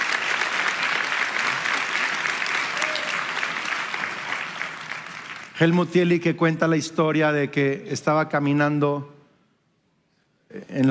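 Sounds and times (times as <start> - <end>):
church audience applauding: 0.0 - 6.2
speech: 5.6 - 9.1.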